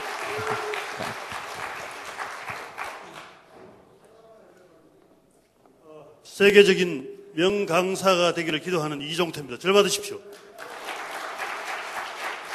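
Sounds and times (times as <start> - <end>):
audience applause: 0.0 - 3.5, 10.5 - 12.5
speech: 6.4 - 10.7.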